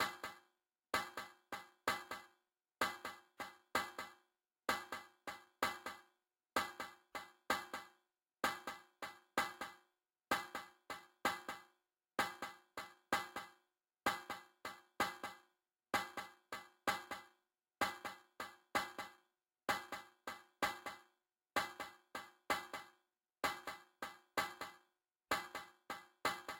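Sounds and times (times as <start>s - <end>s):
percussion: 0.0s - 26.5s.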